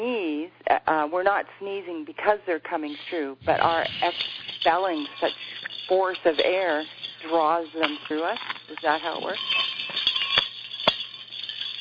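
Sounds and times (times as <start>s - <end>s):
speech: 0.7s - 9.7s
bells ringing: 3.4s - 11.7s.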